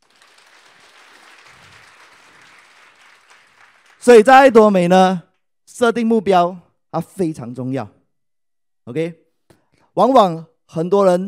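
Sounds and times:
audience applause: 0.0s - 4.3s
speech: 4.0s - 5.2s, 5.8s - 8.0s, 8.8s - 9.2s, 10.0s - 11.2s.

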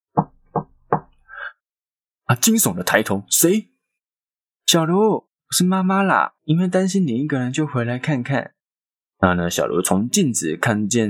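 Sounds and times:
regular knocking on a door: 0.2s - 1.2s
speech: 2.3s - 3.7s, 4.7s - 8.6s, 9.2s - 11.0s.

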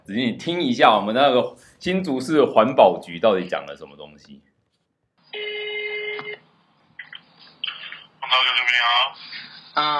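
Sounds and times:
speech: 0.1s - 4.5s, 9.8s - 9.9s
telephone call ring tone: 5.3s - 6.4s.

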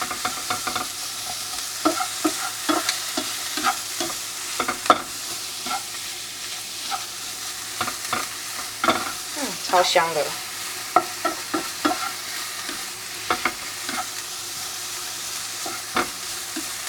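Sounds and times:
utensil scraping and clicking against a pan: 0.0s - 7.1s, 11.0s - 14.2s, 15.6s - 16.7s
shrimp and pork slices stir-frying with onion and shrimp oil in a pan: 0.0s - 16.8s
speech: 9.7s - 10.4s.

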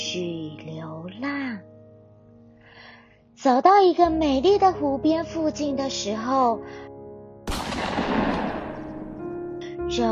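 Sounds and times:
speech: 3.4s - 6.9s, 9.9s - 10.1s
distant hunting rifle gunshots: 7.5s - 9.4s.

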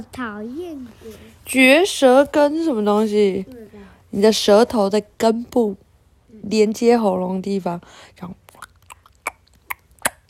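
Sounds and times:
speech: 0.0s - 5.8s, 6.4s - 8.4s
wet mouth chewing: 8.5s - 10.2s.

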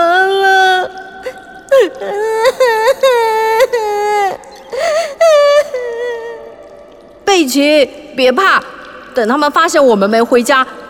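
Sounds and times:
girl crying while lost in a cave: 0.0s - 6.6s
speech: 7.5s - 10.8s.

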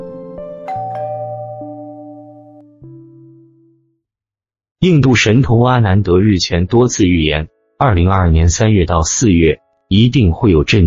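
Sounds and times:
notification bell sound effect for subscribing: 0.7s - 2.8s
speech: 4.8s - 10.8s.

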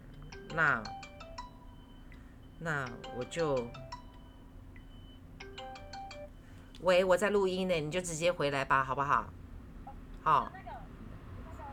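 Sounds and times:
phone ringtone: 0.0s - 6.6s
low steady hum: 0.0s - 11.7s
speech: 0.5s - 1.0s, 2.6s - 3.9s, 6.8s - 9.4s, 10.2s - 10.6s.

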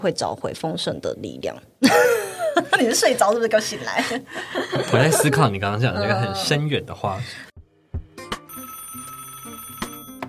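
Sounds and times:
speech: 0.0s - 7.5s
laughter: 3.8s - 6.2s
phone incoming-call ringtone: 8.4s - 10.2s.

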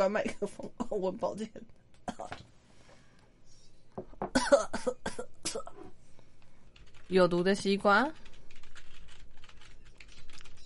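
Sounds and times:
speech: 0.0s - 2.5s, 7.1s - 8.2s
person coughing: 2.1s - 2.4s, 4.3s - 5.9s.

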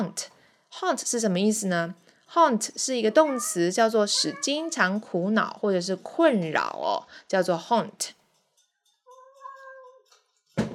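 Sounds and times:
speech: 0.0s - 8.2s
house cat meowing: 3.2s - 4.9s, 9.2s - 9.9s.

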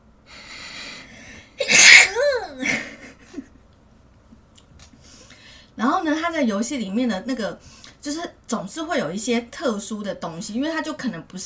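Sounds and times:
person sneezing: 0.7s - 2.7s
speech: 6.3s - 11.4s.

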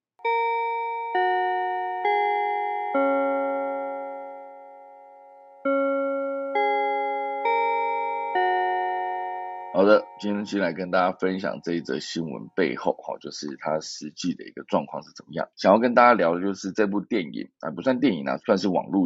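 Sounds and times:
bell chime playing four-note melodic phrases: 0.2s - 10.8s
speech: 9.8s - 19.0s.

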